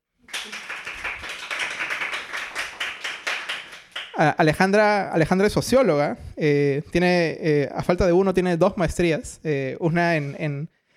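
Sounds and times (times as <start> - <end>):
audience applause: 0.3 - 4.2
speech: 4.2 - 10.8.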